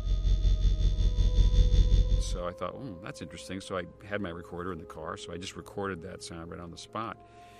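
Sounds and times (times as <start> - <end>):
faulty electrical lamppost buzzing in a parking lot: 0.0 - 2.3
speech: 2.2 - 7.5.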